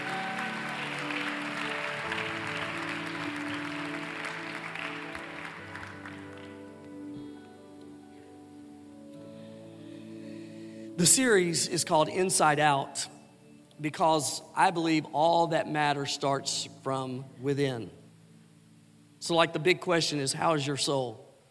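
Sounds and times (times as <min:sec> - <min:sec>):
crowd clapping: 0:00.0 - 0:07.0
soft sustained keyboard music: 0:00.0 - 0:21.2
speech: 0:11.0 - 0:13.2, 0:13.8 - 0:18.0, 0:19.2 - 0:21.2.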